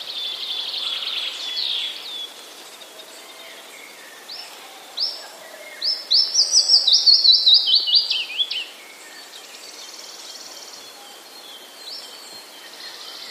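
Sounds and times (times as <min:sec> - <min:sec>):
willow warbler singing: 0:00.0 - 0:13.2.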